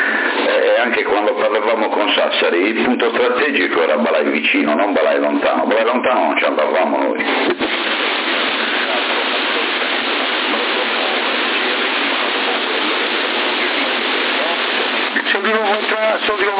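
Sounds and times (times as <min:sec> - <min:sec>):
speech: 0:00.8 - 0:07.8
rain falling outside: 0:07.5 - 0:16.5.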